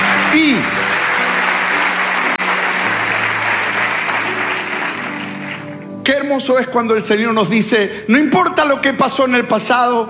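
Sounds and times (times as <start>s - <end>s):
church congregation applause during a sermon: 0.0s - 6.7s
speech: 0.4s - 0.8s, 6.3s - 10.0s.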